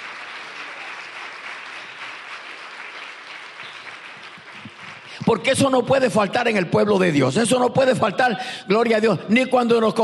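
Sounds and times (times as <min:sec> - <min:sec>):
audience applause: 0:00.0 - 0:05.2
speech: 0:05.2 - 0:10.0.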